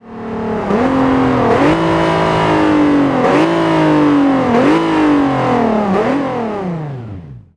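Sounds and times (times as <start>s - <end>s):
vehicles throttling off: 0.0s - 7.5s.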